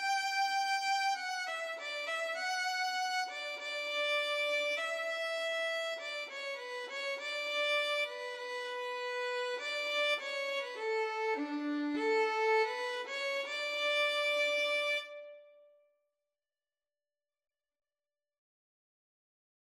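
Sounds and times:
national anthem on violin: 0:00.0 - 0:15.5.

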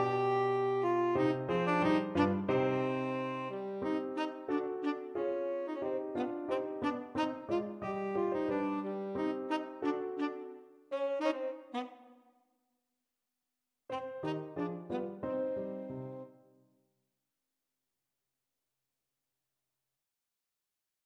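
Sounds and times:
tenor saxophone: 0:00.0 - 0:12.2, 0:13.9 - 0:16.3.

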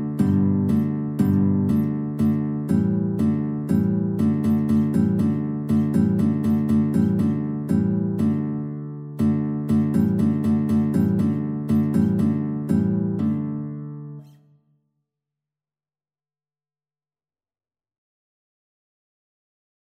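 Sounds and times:
guitar in a duet: 0:00.0 - 0:14.8.

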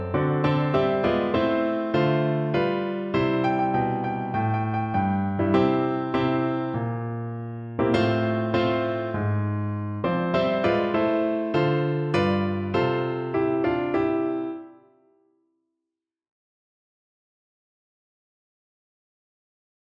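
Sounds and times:
piano: 0:00.0 - 0:15.4.

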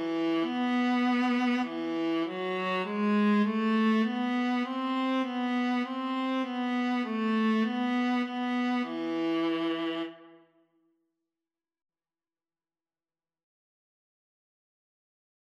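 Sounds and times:
viola duet playing a minuet: 0:00.0 - 0:10.3.

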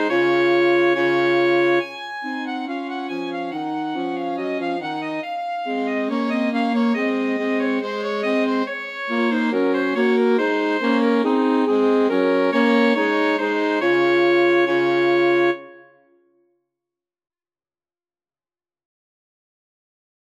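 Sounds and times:
alto saxophone trio playing a carol: 0:00.0 - 0:15.9.

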